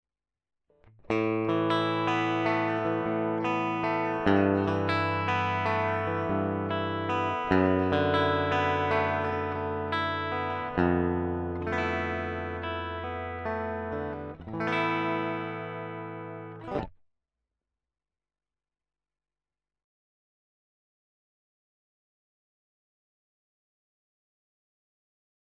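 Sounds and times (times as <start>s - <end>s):
American Tele electric guitar direct input: 1.0s - 16.9s.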